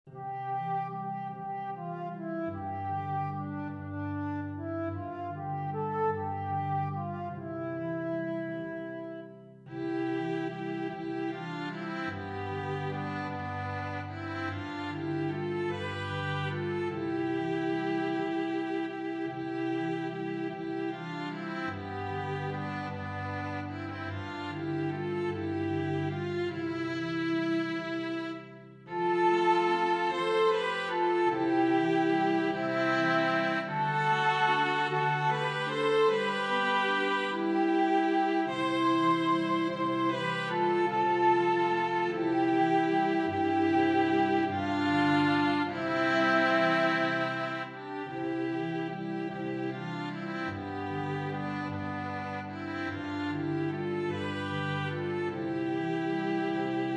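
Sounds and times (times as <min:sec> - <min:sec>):
instrumental music: 0:00.0 - 0:56.9.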